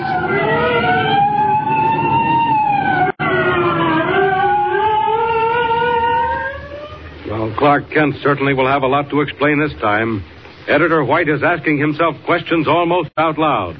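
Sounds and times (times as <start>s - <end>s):
approaching state trooper car sirens wailing: 0.0s - 7.3s
speech: 7.7s - 13.7s.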